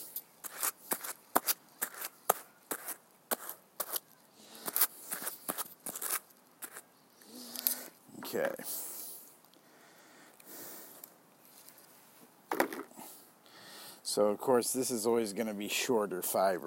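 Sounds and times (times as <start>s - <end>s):
hand carding cards scraped together to clear fiber: 0.4s - 6.8s
speech: 14.2s - 16.6s.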